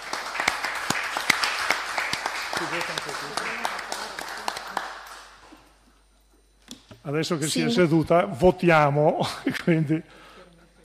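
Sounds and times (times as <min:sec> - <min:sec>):
audience applause: 0:00.0 - 0:05.4
speech: 0:02.7 - 0:03.9, 0:07.1 - 0:10.3.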